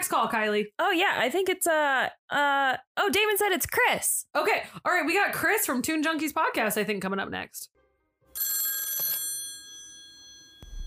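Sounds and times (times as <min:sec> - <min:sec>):
speech: 0:00.1 - 0:07.8
telephone bell ringing for incoming call: 0:08.4 - 0:10.8.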